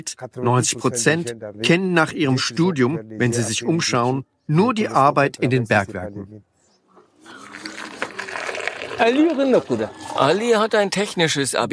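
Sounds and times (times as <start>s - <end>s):
speech: 0.0s - 6.5s, 9.0s - 11.7s
water pouring while making tea in a mining town in Niger: 7.2s - 10.7s.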